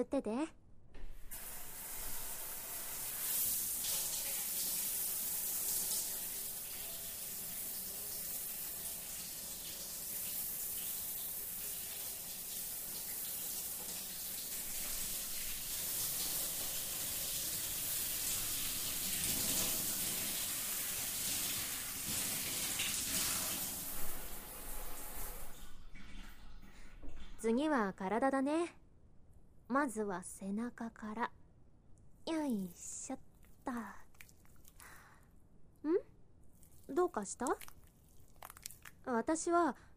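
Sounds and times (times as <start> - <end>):
speech: 0.0 - 0.6, 27.4 - 28.8, 29.7 - 31.4, 32.5 - 34.0, 37.0 - 37.7, 39.1 - 39.9
running water rinsing shampoo from hair: 1.4 - 27.4, 36.5 - 39.0.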